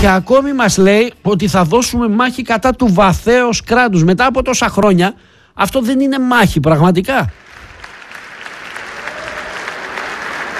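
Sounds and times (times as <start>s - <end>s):
speech: 0.0s - 7.4s
audience applause: 7.4s - 10.5s.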